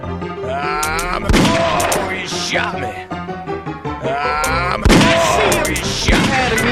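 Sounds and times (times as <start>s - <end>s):
excited voices talking: 0.5s - 3.0s, 4.1s - 6.6s
video game gunshots: 0.8s - 2.2s, 4.8s - 6.6s.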